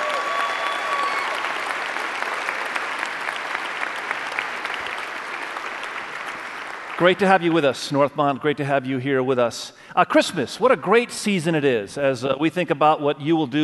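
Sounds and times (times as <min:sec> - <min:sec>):
audience applause at a Christmas-season church gathering: 0:00.0 - 0:07.5
speech: 0:07.0 - 0:13.6.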